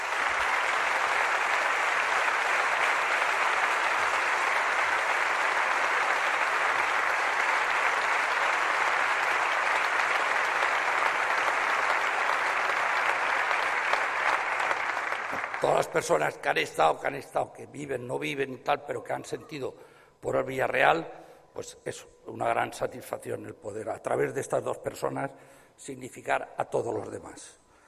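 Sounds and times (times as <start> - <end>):
audience applause: 0.0 - 16.2
speech: 15.7 - 27.6.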